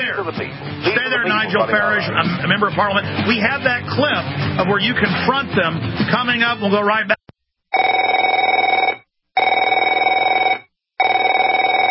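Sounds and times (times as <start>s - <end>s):
speech: 0.2s - 7.2s
laughter: 0.7s - 3.3s
telephone ringing: 7.7s - 11.8s.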